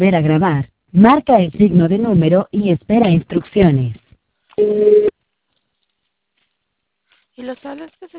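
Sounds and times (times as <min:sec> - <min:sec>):
speech: 0:00.0 - 0:04.0, 0:04.6 - 0:05.2, 0:07.4 - 0:08.1
voicemail electronic beep before recording a message: 0:04.6 - 0:05.1.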